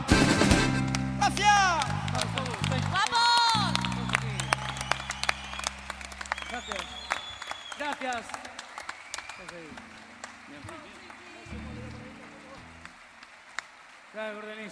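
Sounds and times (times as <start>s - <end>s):
audience applause: 0.8s - 14.7s
people whooping and shouting: 1.4s - 9.7s
low humming tone: 3.9s - 7.7s.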